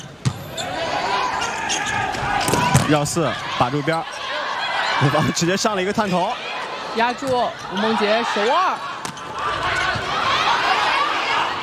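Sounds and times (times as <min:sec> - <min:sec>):
volleyball bounced on court before a serve in an indoor match: 0:00.0 - 0:00.6, 0:07.1 - 0:07.6
crowd din at an indoor volleyball match: 0:00.3 - 0:11.6
speech: 0:02.9 - 0:04.2, 0:05.0 - 0:09.0.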